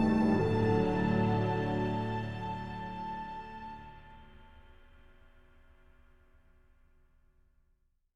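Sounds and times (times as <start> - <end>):
world music: 0.0 - 5.3.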